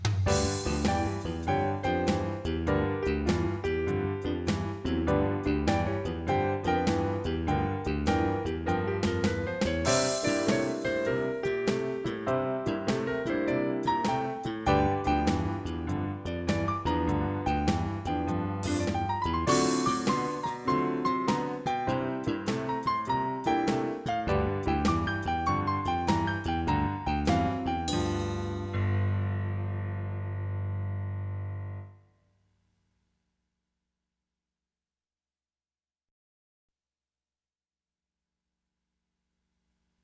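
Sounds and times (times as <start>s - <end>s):
barrelhouse blues piano in G: 0.3s - 31.9s.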